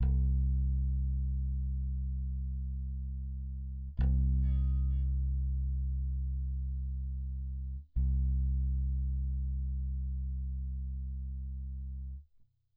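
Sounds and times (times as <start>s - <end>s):
bass: 0.0s - 12.7s.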